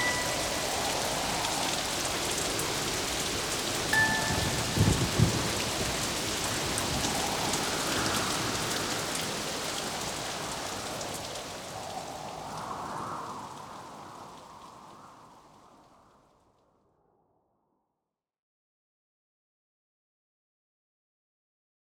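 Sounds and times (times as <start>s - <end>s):
storm: 0.0s - 16.3s
music box: 4.0s - 4.6s.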